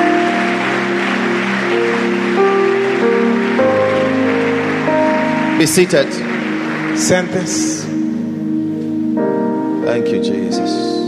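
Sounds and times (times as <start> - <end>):
audience clapping: 0.0 - 9.0
sustained keyboard or organ chords: 0.0 - 11.0
speech: 5.6 - 6.3, 7.0 - 7.8, 10.0 - 10.9.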